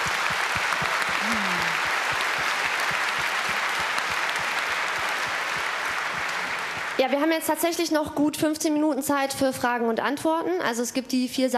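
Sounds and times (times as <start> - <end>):
audience applause: 0.0 - 7.2
speech: 7.0 - 11.5.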